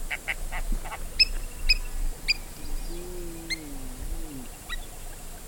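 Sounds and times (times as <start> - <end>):
Humblot's heron: 0.1 - 5.1.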